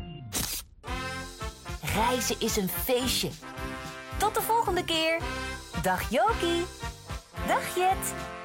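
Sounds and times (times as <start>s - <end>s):
camera shutter: 0.3s - 0.7s
speech: 2.0s - 3.5s, 4.2s - 6.8s, 7.5s - 8.3s.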